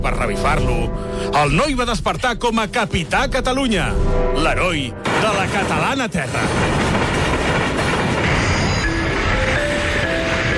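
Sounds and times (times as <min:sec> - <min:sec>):
speech: 0:00.3 - 0:06.8
Rodalies commuter train arriving: 0:06.4 - 0:10.5.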